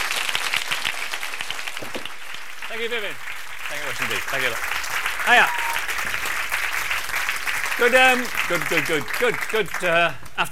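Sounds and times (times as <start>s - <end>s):
audience applause: 0.0s - 10.4s
speech: 2.8s - 6.2s, 7.8s - 10.5s.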